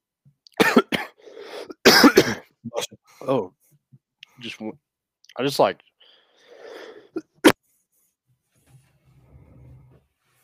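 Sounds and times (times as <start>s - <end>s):
cough: 0.6s - 1.2s, 1.8s - 3.0s, 7.2s - 7.6s
speech: 3.3s - 3.6s, 4.4s - 5.9s.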